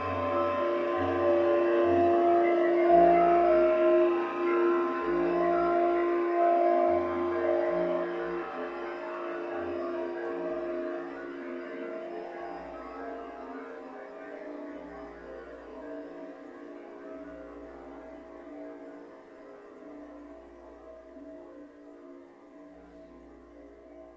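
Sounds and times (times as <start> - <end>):
Bb clarinet: 0.0 - 19.2.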